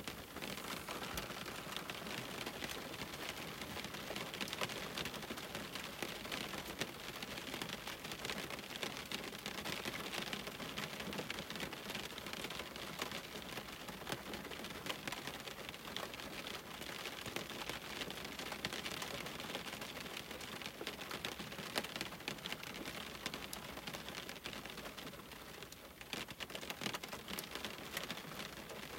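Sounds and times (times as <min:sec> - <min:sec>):
soft rain on window glass: 0:00.0 - 0:28.9.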